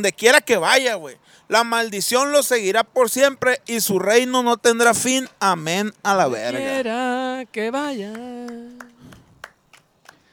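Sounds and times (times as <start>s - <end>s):
speech: 0.0s - 8.9s
faint drawn-out vocal tone: 6.2s - 9.3s
slow steady hand clapping: 8.1s - 10.3s.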